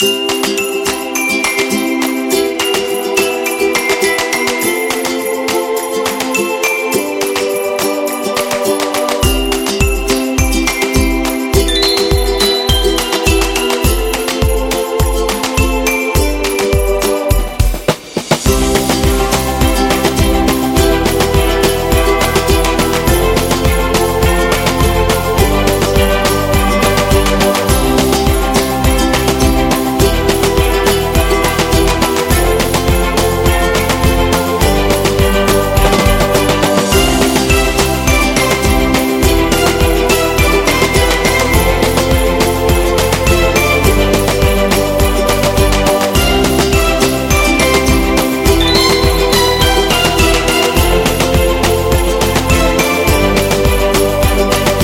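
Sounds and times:
christmas music: 0:00.0 - 0:54.8.

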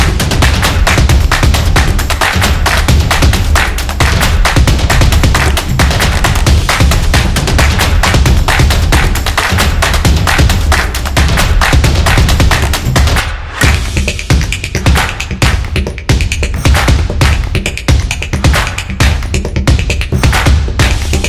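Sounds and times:
clapping drums: 0:00.0 - 0:21.2.

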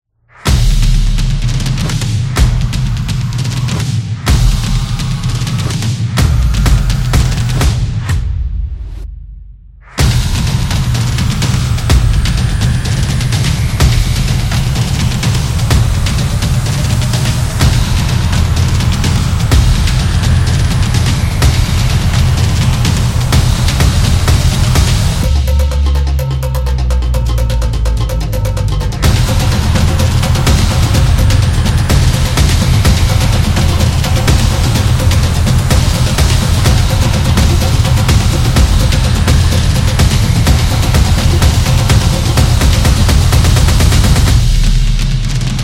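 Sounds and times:
sports drums: 0:00.3 - 0:09.1, 0:09.8 - 0:45.6.

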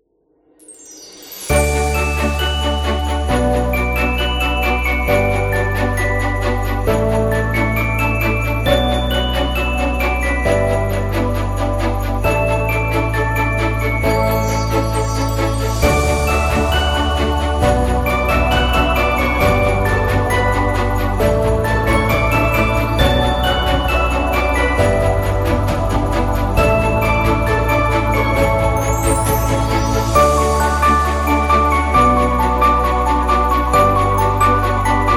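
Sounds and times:
elegant Christmas music: 0:00.5 - 0:35.1.

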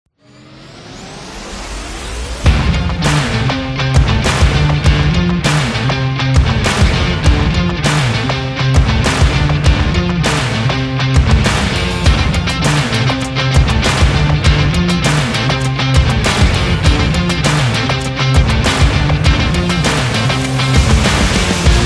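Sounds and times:
rock party music: 0:02.3 - 0:21.8.

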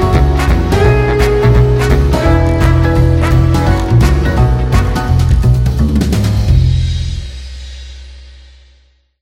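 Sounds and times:
jazz music: 0:00.0 - 0:07.4.

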